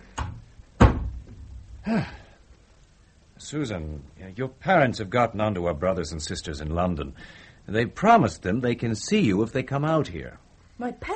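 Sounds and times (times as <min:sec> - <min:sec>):
office door being closed: 0:00.2 - 0:01.5
speech: 0:01.8 - 0:02.2, 0:03.4 - 0:11.1.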